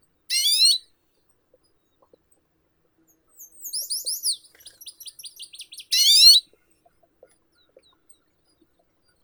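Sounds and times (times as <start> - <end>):
Arctic redpoll Acanthis hornemanni calling: 0.3 - 0.8, 3.4 - 6.4.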